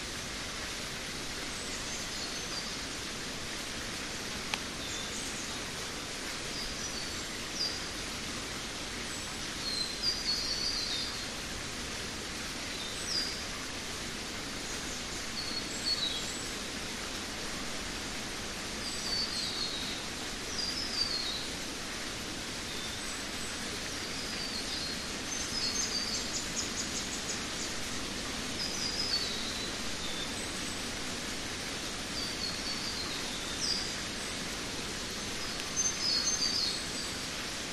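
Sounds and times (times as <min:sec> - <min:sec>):
rainforest creek in Queensland Australia: 0:00.0 - 0:37.7
wind in rainforest trees in Queensland Australia: 0:00.0 - 0:37.7.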